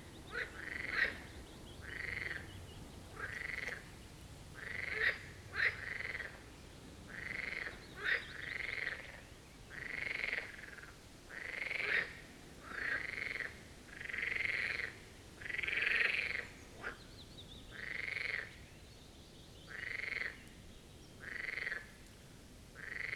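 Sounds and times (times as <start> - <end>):
marsh frogs croaking in chorus: 0.3 - 4.0, 4.6 - 6.5, 7.1 - 17.1, 17.7 - 18.6, 19.7 - 20.5, 21.2 - 22.0, 22.8 - 23.1.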